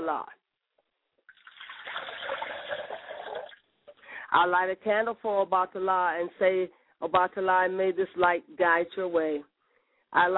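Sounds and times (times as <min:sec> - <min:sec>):
speech: 0:00.1 - 0:00.4, 0:04.3 - 0:09.5, 0:10.1 - 0:10.3
liquid poured as a libation: 0:01.3 - 0:04.0.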